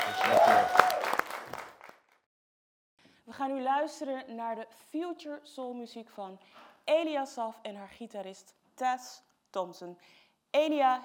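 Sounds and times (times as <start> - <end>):
applause: 0.0 - 2.2
speech: 3.4 - 11.0.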